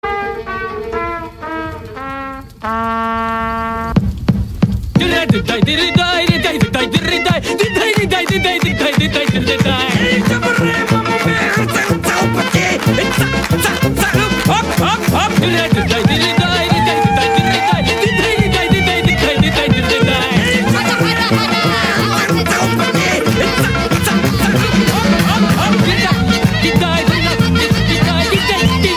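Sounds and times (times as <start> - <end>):
klezmer music: 0.0 - 4.0, 5.0 - 28.9
laughter: 5.0 - 28.9.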